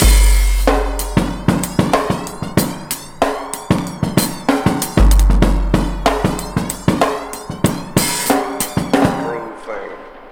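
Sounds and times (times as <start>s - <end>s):
breakbeat drums: 0.0s - 10.3s.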